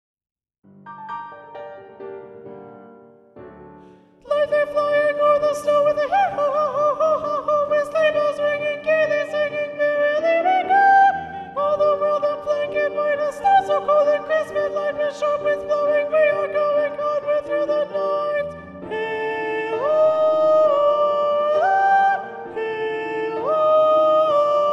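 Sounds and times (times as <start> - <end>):
soprano voices singing: 4.4 - 24.7.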